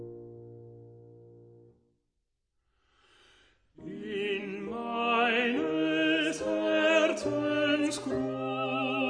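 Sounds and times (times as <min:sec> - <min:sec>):
tenor singing: 0:03.8 - 0:09.0.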